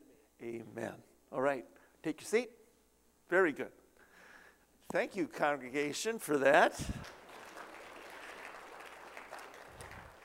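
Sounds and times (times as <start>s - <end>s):
speech: 0.5s - 2.6s, 3.3s - 3.8s, 4.9s - 7.2s
audience clapping: 7.0s - 10.2s.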